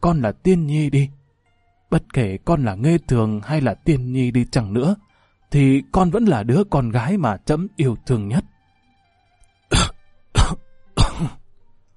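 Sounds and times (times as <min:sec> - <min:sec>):
speech: 0:00.1 - 0:01.2, 0:01.9 - 0:08.5, 0:11.2 - 0:11.4
old emperor's dry coughing fit after laughing: 0:09.7 - 0:11.4.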